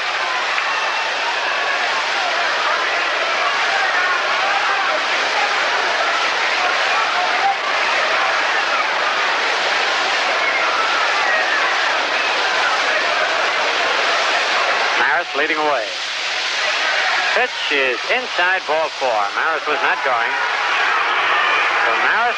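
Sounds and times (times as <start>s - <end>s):
baseball crowd booing: 0.0s - 22.3s
speech: 17.4s - 20.6s, 21.8s - 22.3s.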